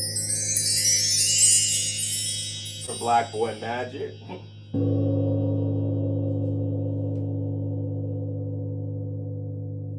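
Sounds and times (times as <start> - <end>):
chimes ringing: 0.0 - 5.0
steady low drone: 2.8 - 9.9
speech: 2.9 - 5.0.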